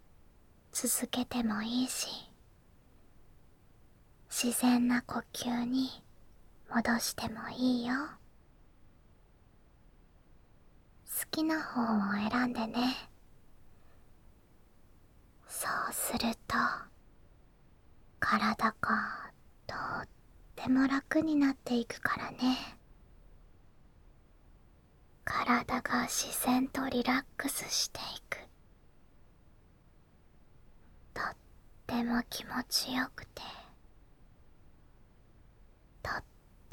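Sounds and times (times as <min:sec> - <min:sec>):
ASMR whispering: 0:00.7 - 0:02.4, 0:04.3 - 0:06.1, 0:06.7 - 0:08.2, 0:11.0 - 0:13.2, 0:15.4 - 0:17.0, 0:18.2 - 0:22.8, 0:25.2 - 0:28.6, 0:31.1 - 0:33.8, 0:36.0 - 0:36.7.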